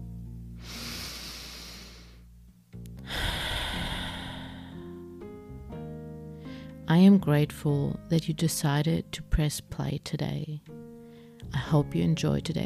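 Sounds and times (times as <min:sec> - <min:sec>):
soft sustained music: 0:00.0 - 0:12.6
slow deep breath in and out: 0:00.6 - 0:02.3, 0:03.0 - 0:05.0
speech: 0:06.9 - 0:10.9, 0:11.5 - 0:12.6.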